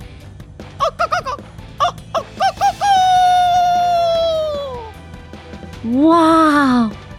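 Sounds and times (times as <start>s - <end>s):
person imitating a rooster crowing: 1.8s - 4.9s
speech: 5.8s - 7.0s.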